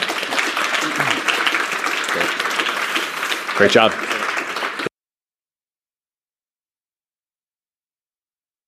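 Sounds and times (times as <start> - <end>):
audience applause: 0.0 - 4.9
speech: 3.6 - 4.2.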